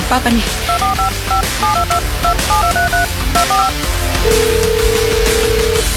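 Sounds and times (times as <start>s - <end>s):
speech: 0.1s - 5.4s
telephone keypad tones: 0.7s - 5.8s.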